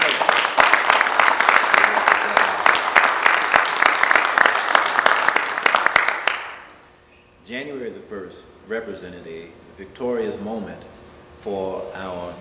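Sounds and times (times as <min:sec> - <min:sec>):
audience applause: 0:00.0 - 0:06.7
speech: 0:07.6 - 0:12.3.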